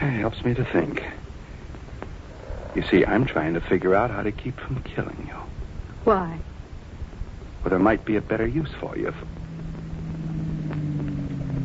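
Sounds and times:
speech: 0.2 - 1.3, 2.8 - 6.5, 7.6 - 9.4
car entering a driveway: 7.7 - 11.6.

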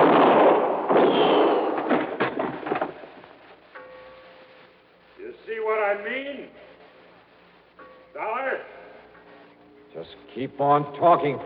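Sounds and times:
gunshot sound effect in a radio drama: 0.0 - 3.2
speech: 10.4 - 11.4.

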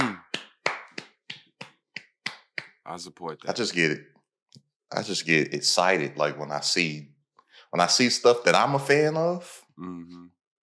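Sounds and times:
hand claps: 0.0 - 2.8
speech: 2.9 - 10.4.

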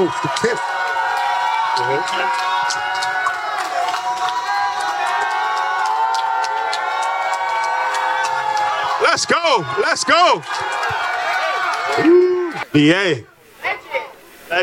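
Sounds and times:
speech: 0.0 - 0.7, 1.8 - 3.1, 9.2 - 11.1, 11.9 - 13.3
clapping: 0.0 - 12.6
crowd cheering: 0.0 - 13.9
whoops and high whistles: 11.9 - 12.6.

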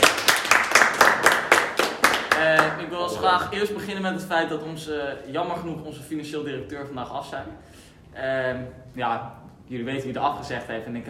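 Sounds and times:
group clapping hands: 0.0 - 2.9
speech: 3.2 - 11.0.

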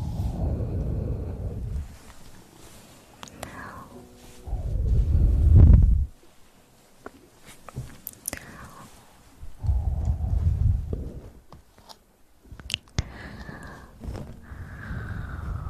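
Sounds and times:
soft breathy noise: 0.0 - 6.2, 8.2 - 11.5, 12.8 - 15.6
quieter wet clicks and sharp ticks: 12.6 - 13.1.

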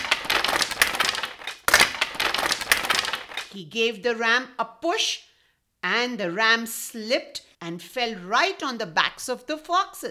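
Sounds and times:
sack being shaken hard: 0.0 - 3.5
speech: 3.6 - 10.1.

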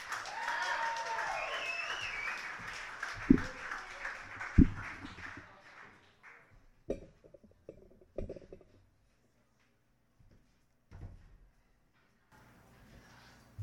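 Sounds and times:
audience applause: 0.0 - 6.5
scattered sharp claps and thumps: 2.6 - 3.8, 4.4 - 5.4, 6.9 - 8.8.

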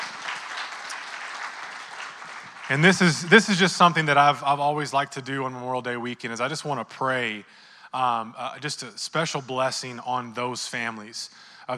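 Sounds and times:
audience clapping: 0.0 - 4.1
speech: 2.7 - 11.7.

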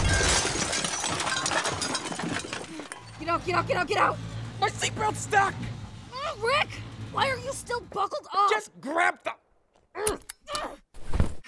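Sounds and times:
glass shattering: 0.0 - 3.4
car flipping over, metal crunching: 0.0 - 6.0
speech: 3.4 - 5.8, 6.4 - 9.4.

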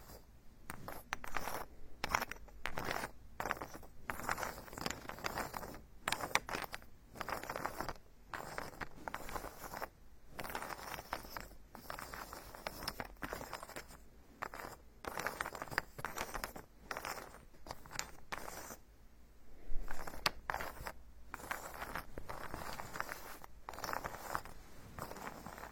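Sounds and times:
ear picking scratching and brushing strokes: 0.0 - 18.9, 19.5 - 25.7
faint low hum: 0.0 - 25.7.

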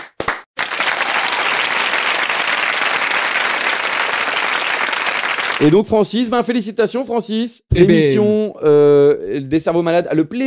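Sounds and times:
audience applause: 0.2 - 5.8
speech: 5.6 - 10.4.

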